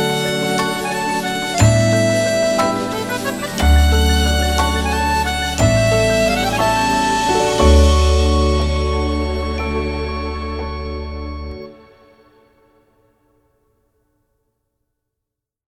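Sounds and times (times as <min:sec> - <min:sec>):
romantic accordion music: 0:00.0 - 0:12.0.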